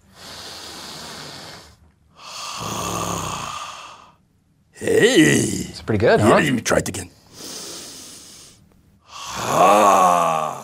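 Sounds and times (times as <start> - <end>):
deep belly breathing demonstration: 0.0 - 4.3, 7.2 - 10.6
speech: 2.6 - 2.9, 4.8 - 7.2.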